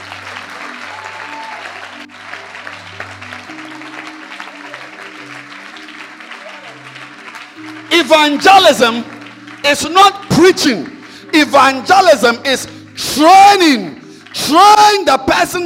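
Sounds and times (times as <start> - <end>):
audience clapping hands: 0.0 - 15.6
speech: 8.0 - 13.9, 14.5 - 15.6.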